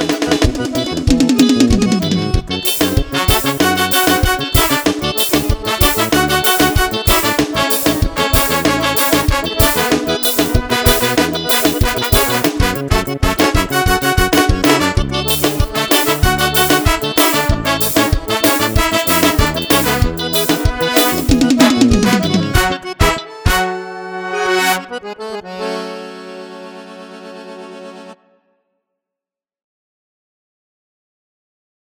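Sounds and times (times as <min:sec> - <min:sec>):
sampled rhythm: 0:00.0 - 0:23.9.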